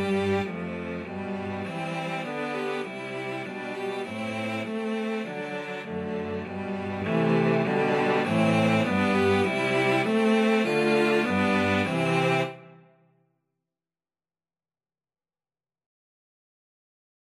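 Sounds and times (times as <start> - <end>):
cello trio playing: 0.0 - 12.7.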